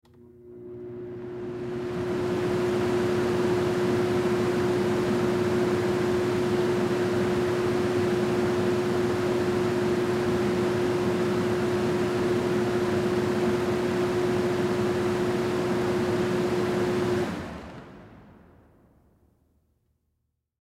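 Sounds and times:
oven stove fan running on high: 0.1s - 18.6s.

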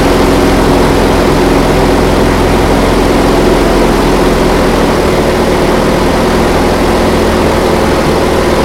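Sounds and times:
T-28D Trojan airplane taking off heard from interior: 0.0s - 8.6s.

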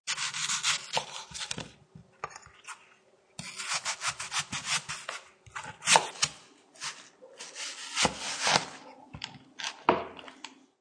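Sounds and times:
sharp knife slicing a crisp apple on a wooden cutting board: 0.1s - 1.8s, 3.4s - 9.0s.

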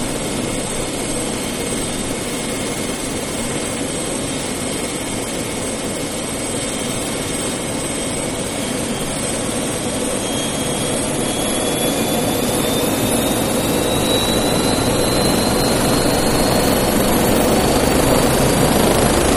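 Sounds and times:
military helicopter idling, lifting off and landing: 0.0s - 19.3s.

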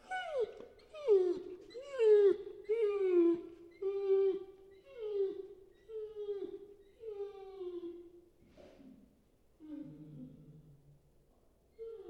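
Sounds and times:
puppy whining: 0.0s - 8.2s, 11.7s - 12.0s.

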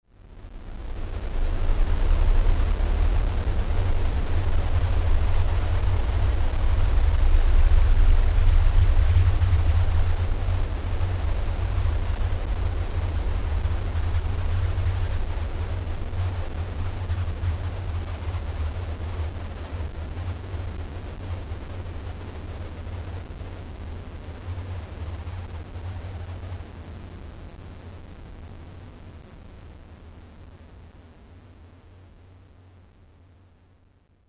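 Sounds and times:
glitch noise music: 0.4s - 26.6s.

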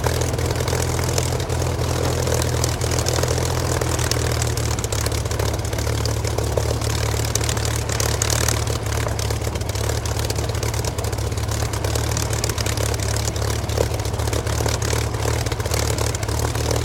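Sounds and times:
Supermarine Spitfire Mk XVI aircraft engine idling: 0.0s - 16.8s.

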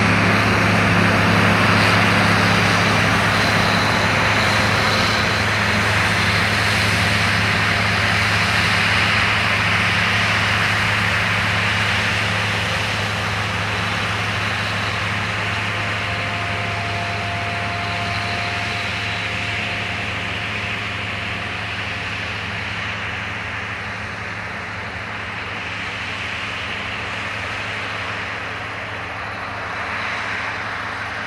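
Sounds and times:
industrial combine harvester approaching and passing: 0.0s - 31.2s.

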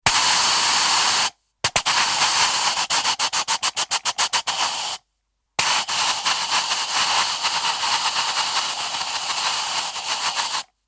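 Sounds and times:
puncture type air escaping hiss: 0.0s - 5.0s, 5.6s - 10.8s.

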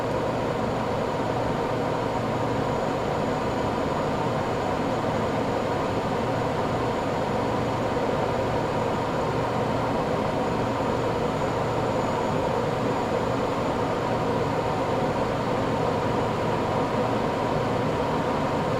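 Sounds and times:
Gloster Meteor F Mk8 fighter jet flying, interior: 0.0s - 18.7s.

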